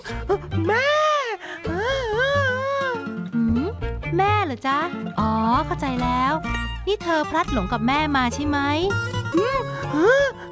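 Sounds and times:
human voice imitating a baby kangaroo crying: 0:00.2 - 0:03.8
speech: 0:04.2 - 0:10.5.

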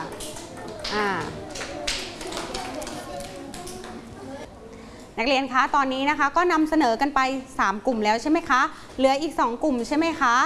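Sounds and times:
classroom applause for a student group: 0:00.0 - 0:04.4
speech: 0:00.9 - 0:01.4, 0:05.2 - 0:10.4.

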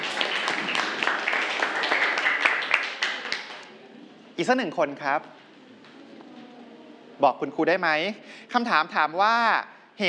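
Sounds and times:
students clapping for a classmate: 0:00.0 - 0:03.8
speech: 0:04.4 - 0:05.4, 0:07.2 - 0:10.0.

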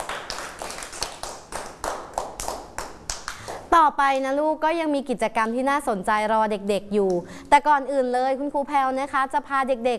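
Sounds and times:
children clapping for themselves: 0:00.0 - 0:03.7
speech: 0:03.8 - 0:09.9.

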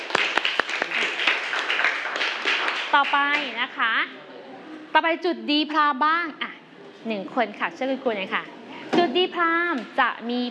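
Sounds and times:
classroom applause: 0:00.0 - 0:03.6
speech: 0:03.0 - 0:04.3, 0:04.9 - 0:06.4, 0:07.0 - 0:10.4.

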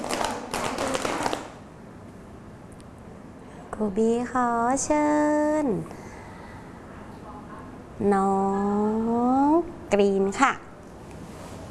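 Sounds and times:
hands clapping: 0:00.0 - 0:01.6
speech: 0:03.8 - 0:06.0, 0:08.0 - 0:10.6.

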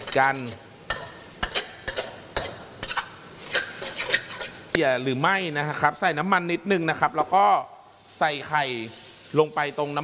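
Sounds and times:
spatula stirring noodles in a pan: 0:00.0 - 0:04.8
speech: 0:00.1 - 0:00.6, 0:04.8 - 0:10.0.

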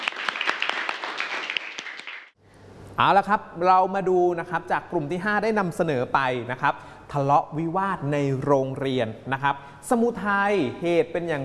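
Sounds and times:
students applauding after a group presentation in class: 0:00.0 - 0:02.4
speech: 0:03.0 - 0:11.4.

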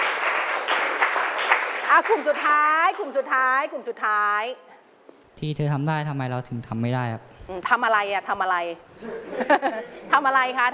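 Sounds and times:
audience applause: 0:00.0 - 0:02.6
speech: 0:01.9 - 0:04.7, 0:05.4 - 0:10.7
laughter: 0:09.0 - 0:10.1.

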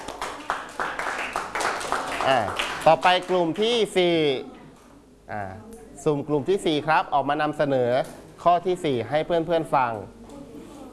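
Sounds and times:
classmates in a Thai classroom clapping rhythmically: 0:00.0 - 0:03.7
speech: 0:02.3 - 0:04.6, 0:05.3 - 0:10.2.

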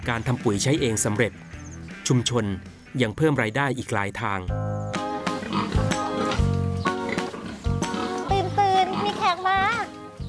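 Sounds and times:
speech: 0:00.0 - 0:04.8
pigs grunting and squealing on a community farm: 0:05.4 - 0:06.4, 0:07.1 - 0:09.4.

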